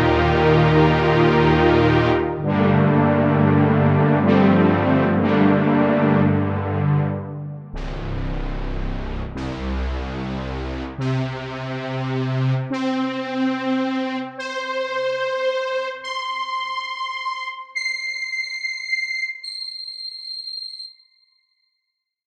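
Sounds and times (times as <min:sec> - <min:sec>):
supersaw synth: 0:00.0 - 0:19.7
sampler: 0:02.2 - 0:13.1, 0:14.4 - 0:20.8.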